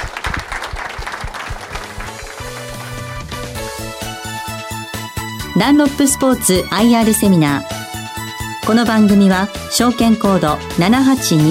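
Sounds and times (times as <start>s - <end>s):
audience applause: 0.0s - 3.8s
speech: 5.6s - 7.8s, 8.7s - 11.5s.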